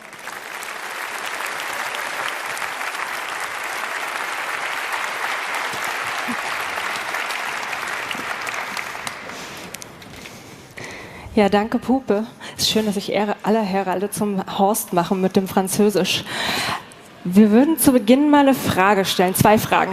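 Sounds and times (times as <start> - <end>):
audience applause: 0.0 - 10.2
speech: 11.4 - 19.9.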